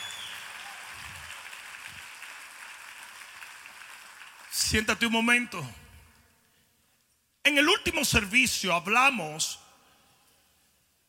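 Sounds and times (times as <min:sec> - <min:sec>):
audience applause: 0:00.0 - 0:04.6
speech: 0:04.6 - 0:05.8, 0:07.6 - 0:09.6.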